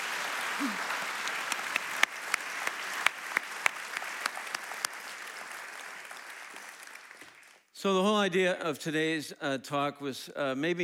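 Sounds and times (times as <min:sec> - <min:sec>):
audience applause: 0:00.0 - 0:07.6
speech: 0:07.8 - 0:10.8.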